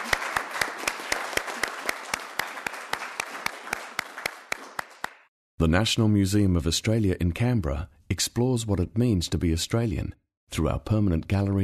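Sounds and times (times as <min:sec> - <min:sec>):
audience applause: 0:00.0 - 0:05.3
speech: 0:05.6 - 0:11.6.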